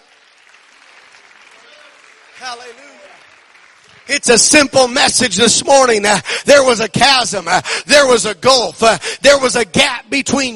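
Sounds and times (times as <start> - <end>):
audience clapping: 0.0 - 6.3
speech: 2.4 - 3.1, 4.0 - 10.5.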